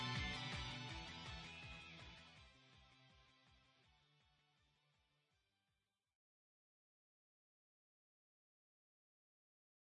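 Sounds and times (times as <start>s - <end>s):
background music: 0.0s - 3.6s.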